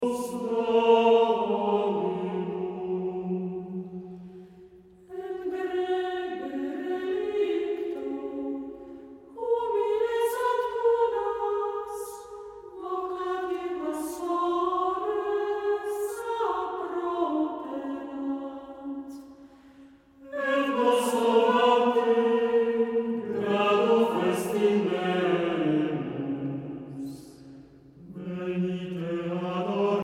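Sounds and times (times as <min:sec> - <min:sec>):
hymn: 0:00.0 - 0:30.0.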